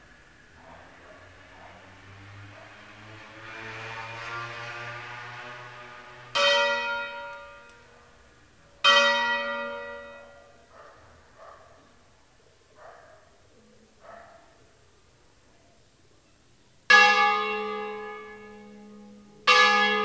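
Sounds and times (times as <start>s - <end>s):
church bells ringing for a funeral: 6.3s - 8.0s, 8.8s - 10.6s, 16.9s - 20.0s.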